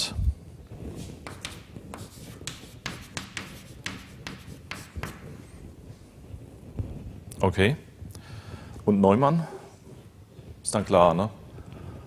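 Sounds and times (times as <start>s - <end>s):
pen strokes writing out equations by hand: 1.2s - 5.4s
speech: 7.4s - 7.9s, 8.8s - 9.6s, 10.7s - 11.4s.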